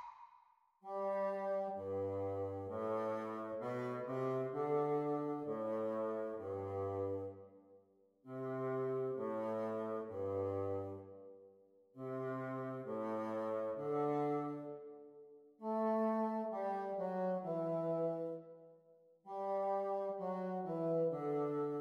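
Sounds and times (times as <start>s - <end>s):
bassoon duet: 0.9s - 7.5s, 8.3s - 11.1s, 12.0s - 15.0s, 15.6s - 18.5s, 19.3s - 21.7s.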